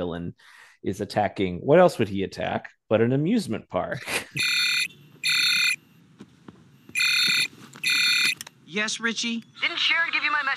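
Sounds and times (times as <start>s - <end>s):
speech: 0.0s - 4.7s, 8.7s - 10.5s
electronic communicator alert buzzing: 4.4s - 5.8s, 6.9s - 8.4s.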